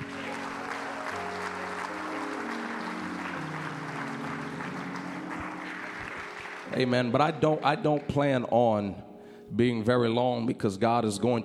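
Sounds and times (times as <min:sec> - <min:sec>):
audience clapping hands: 0:00.0 - 0:08.2
speech: 0:06.7 - 0:11.4.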